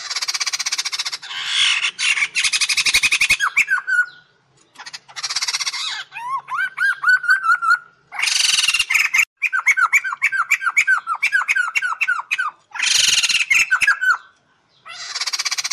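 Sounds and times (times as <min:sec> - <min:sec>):
bird singing with whistles and buzzy rattles: 0:00.1 - 0:15.7.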